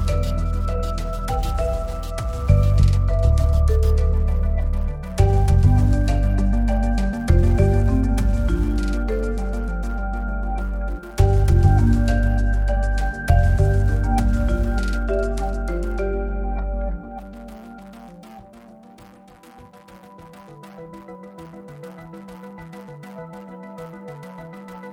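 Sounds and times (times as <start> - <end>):
business marimba music: 0.0 - 18.1.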